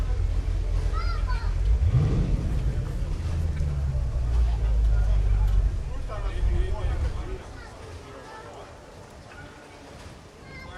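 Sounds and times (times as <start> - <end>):
heavy low boat engine rumble: 0.0 - 8.3
day trippers and diners chattering on the waterfront in Nagu, Finland: 0.0 - 10.7.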